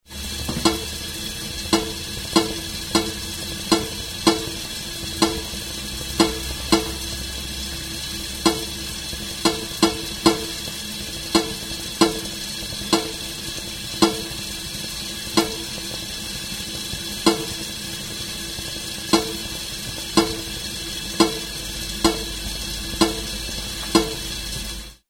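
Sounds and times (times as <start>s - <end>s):
kettle: 0.0s - 25.0s.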